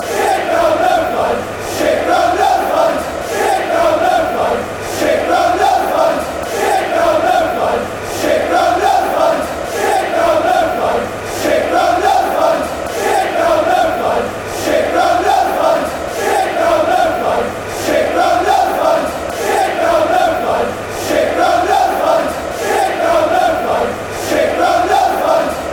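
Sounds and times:
chanting: 0:00.0 - 0:25.7.

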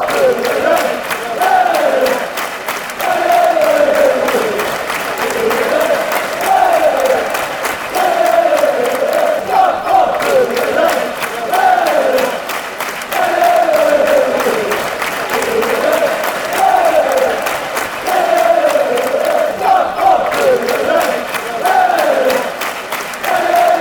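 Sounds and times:
football crowd chanting: 0:00.0 - 0:23.7.

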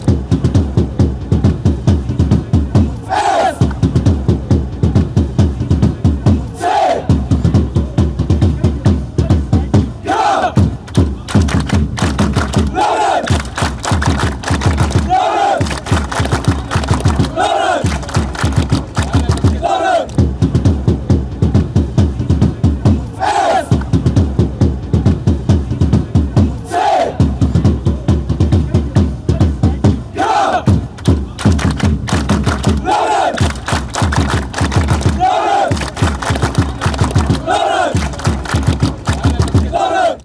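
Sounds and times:
fans chanting: 0:00.6 - 0:21.6, 0:22.3 - 0:40.2.

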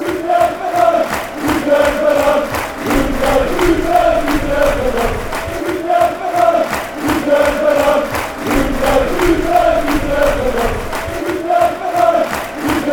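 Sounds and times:
fans chanting: 0:00.0 - 0:12.9.

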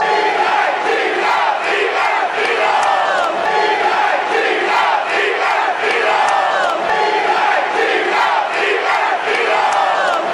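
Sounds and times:
fans chanting: 0:00.0 - 0:10.3.

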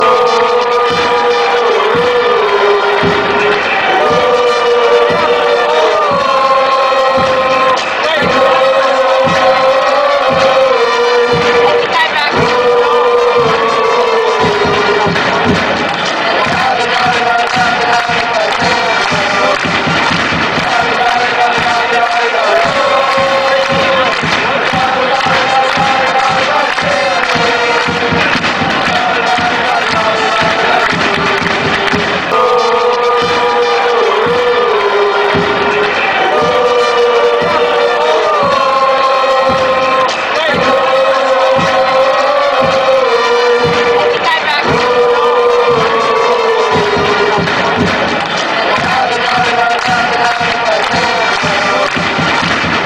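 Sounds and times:
chanting: 0:00.0 - 0:52.8.

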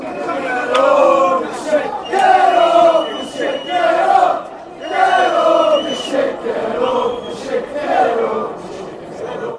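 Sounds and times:
football crowd chanting: 0:00.0 - 0:09.5.

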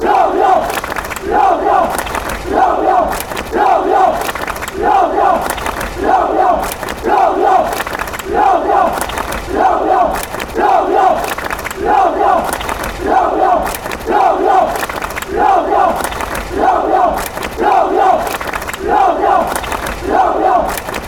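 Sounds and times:
fans chanting: 0:00.0 - 0:21.0.

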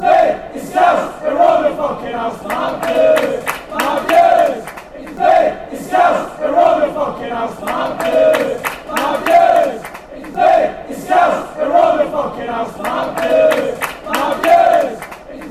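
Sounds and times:
Scouse football fans chanting: 0:00.0 - 0:15.4.

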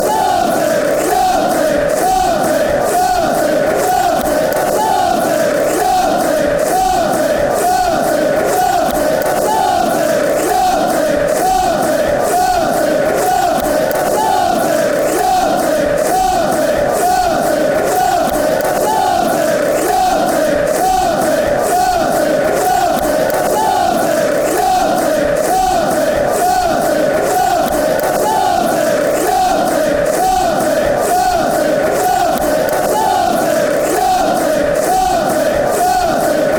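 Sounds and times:
football songs and soccer chants: 0:00.0 - 0:36.5.

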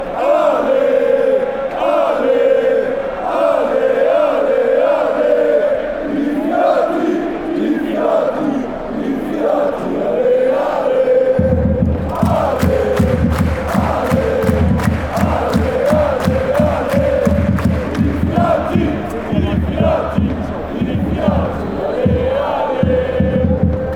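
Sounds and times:
people chanting: 0:00.0 - 0:23.9.

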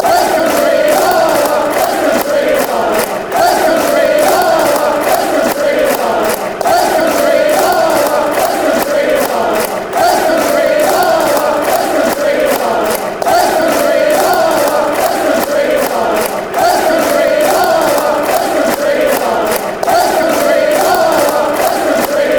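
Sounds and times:
West Country football fans chanting la la la: 0:00.0 - 0:22.3.

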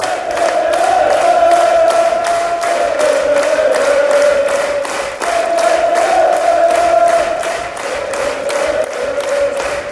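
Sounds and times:
crowd chanting: 0:00.0 - 0:09.9.

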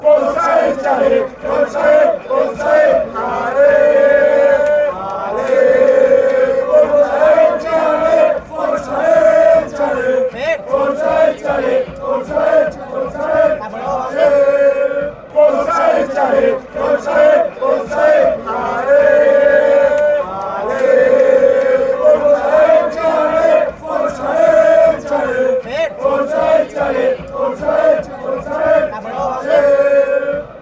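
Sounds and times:
fans chanting: 0:00.0 - 0:30.5.

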